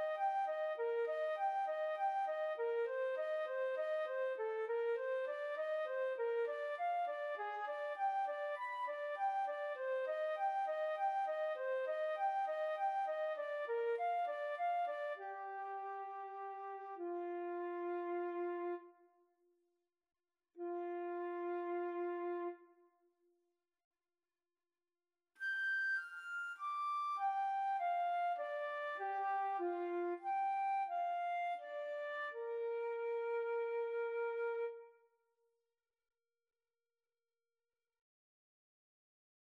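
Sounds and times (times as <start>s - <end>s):
flute duet: 0.0s - 19.0s, 20.6s - 22.7s, 25.4s - 35.0s.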